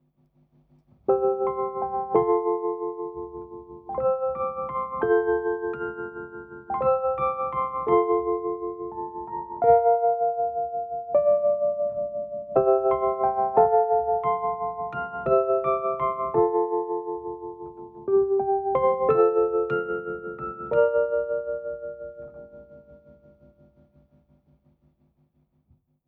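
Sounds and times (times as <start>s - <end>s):
keyboard playing: 1.1s - 23.2s.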